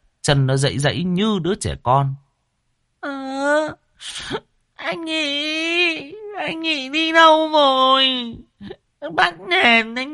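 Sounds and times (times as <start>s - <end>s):
speech: 0.2s - 2.2s, 3.0s - 10.1s
person wailing and sobbing with tears and a runny nose: 3.0s - 10.1s.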